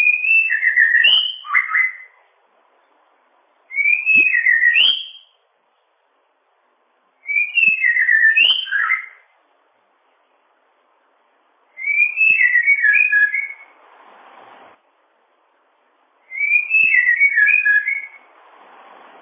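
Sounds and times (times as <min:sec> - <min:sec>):
bird whistled warbling: 0:00.0 - 0:02.2, 0:03.7 - 0:05.4, 0:07.2 - 0:09.3, 0:11.8 - 0:13.7, 0:16.3 - 0:18.3.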